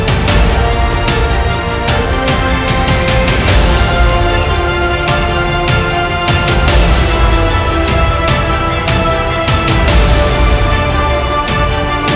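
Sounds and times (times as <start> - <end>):
epic cinematic music: 0.0 - 12.1.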